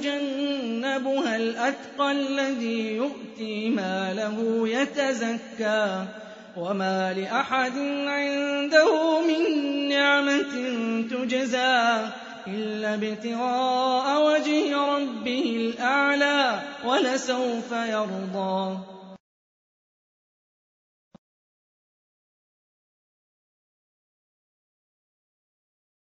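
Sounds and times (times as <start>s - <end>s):
Quran recitation: 0.0s - 19.2s.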